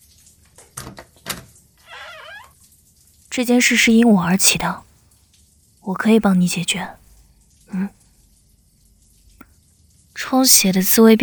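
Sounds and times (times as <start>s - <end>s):
door sliding squeak: 1.8s - 2.6s
door opening: 1.9s - 2.5s
speech: 3.4s - 4.9s, 5.9s - 7.0s, 7.7s - 8.0s, 10.3s - 11.2s.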